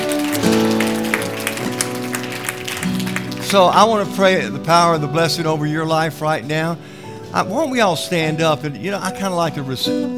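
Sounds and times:
audience clapping hands: 0:00.0 - 0:04.4
speech: 0:03.5 - 0:10.1.

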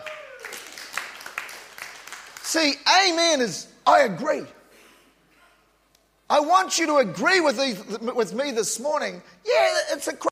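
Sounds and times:
audience clapping: 0:00.0 - 0:02.8
speech: 0:02.5 - 0:04.6, 0:06.3 - 0:10.3.

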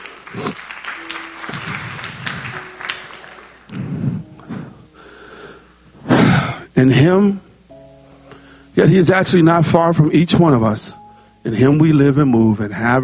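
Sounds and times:
audience clapping hands: 0:00.0 - 0:04.5
speech: 0:00.3 - 0:00.7, 0:06.8 - 0:07.4, 0:08.8 - 0:13.0.

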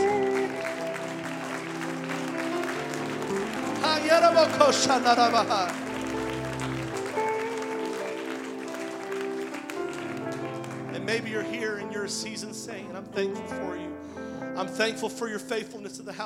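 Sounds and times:
audience hand clapping: 0:00.0 - 0:12.4
speech: 0:04.0 - 0:05.8, 0:11.1 - 0:14.0, 0:14.6 - 0:16.2.

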